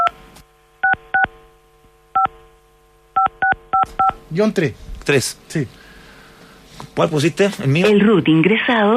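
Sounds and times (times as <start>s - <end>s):
faint steady hum: 0.0s - 8.9s
phone keypad tones entering an ID number: 3.2s - 4.2s
speech: 4.3s - 5.8s, 7.0s - 8.9s.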